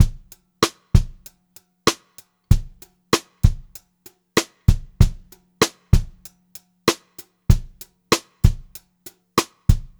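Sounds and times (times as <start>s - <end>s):
pop-rock drum loop: 0.0s - 1.3s, 2.5s - 3.8s, 4.4s - 6.2s, 7.5s - 8.8s, 9.5s - 9.9s.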